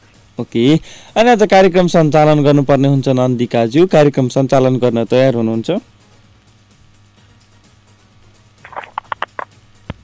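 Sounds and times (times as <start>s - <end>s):
speech: 0.4s - 6.0s
loud steady phone line tone: 8.6s - 10.0s.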